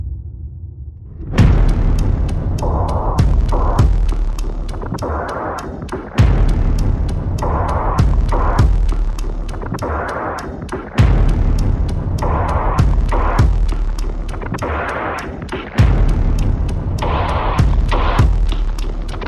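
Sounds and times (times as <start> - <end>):
percussion: 1.0 - 19.2.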